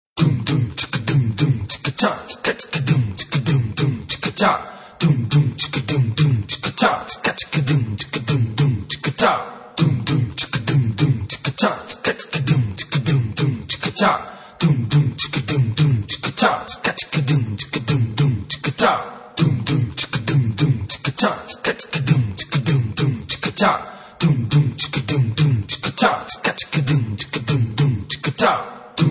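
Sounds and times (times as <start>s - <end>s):
fast Saidi vocal: 0.2s - 29.0s.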